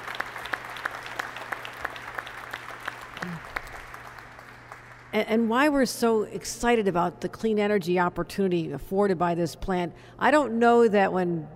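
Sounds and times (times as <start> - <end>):
audience applause: 0.0 - 5.1
speech: 5.1 - 11.5.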